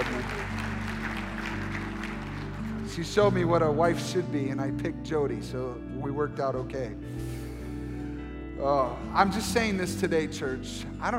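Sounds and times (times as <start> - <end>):
audience clapping: 0.0 - 3.6
speech: 3.0 - 7.2, 8.6 - 11.1.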